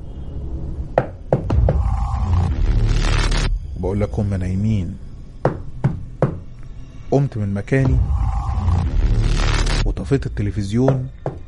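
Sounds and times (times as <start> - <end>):
steady low rumbling background: 0.8 - 11.4
speech: 3.8 - 5.1, 7.1 - 9.0, 10.0 - 11.2
knocking on a bathroom door from inside the bathroom: 5.4 - 6.4.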